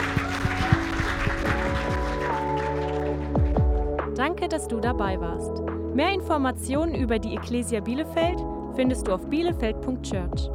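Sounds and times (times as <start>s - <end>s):
crowd clapping: 0.0s - 4.0s
speech: 4.2s - 10.5s.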